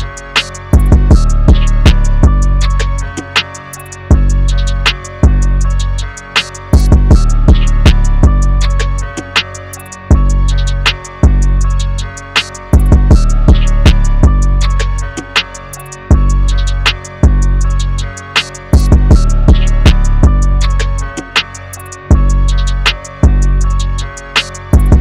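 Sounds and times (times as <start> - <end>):
160 BPM electronic music loop in F minor: 0.0 - 24.9.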